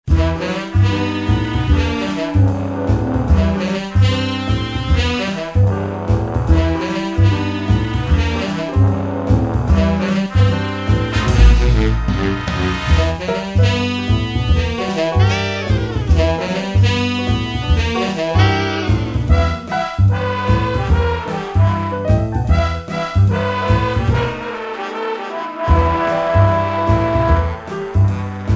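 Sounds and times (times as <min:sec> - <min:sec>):
jazz music: 0:00.1 - 0:28.5.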